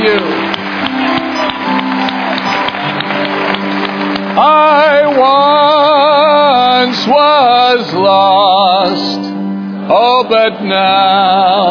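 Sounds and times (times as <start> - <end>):
audience applause: 0.0 - 7.5
speech: 6.9 - 9.3, 9.9 - 11.6.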